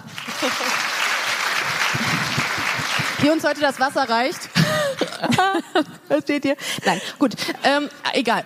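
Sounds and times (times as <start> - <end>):
audience applause: 0.0 - 5.2
laughter: 0.2 - 1.0, 4.5 - 6.1
speech: 0.4 - 0.8, 3.2 - 4.4, 5.2 - 8.4.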